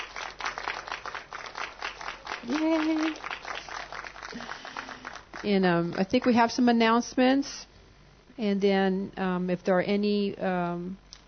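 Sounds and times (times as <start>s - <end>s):
audience clapping: 0.0s - 6.4s
speech: 2.4s - 3.4s, 4.3s - 4.6s, 5.4s - 7.7s, 8.4s - 11.0s.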